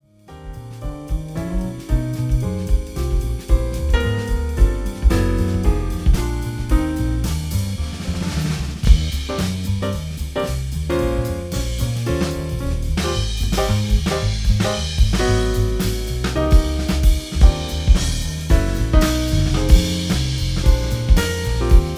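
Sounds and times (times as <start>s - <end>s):
jazz trio playing: 0.1s - 21.9s.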